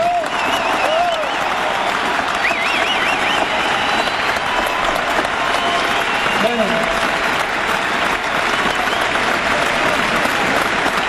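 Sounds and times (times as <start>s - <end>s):
audience applause for the orchestra: 0.0s - 11.0s.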